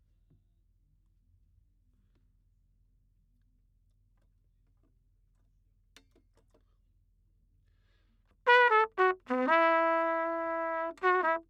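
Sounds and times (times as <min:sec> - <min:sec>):
trumpet: 0:08.4 - 0:11.4.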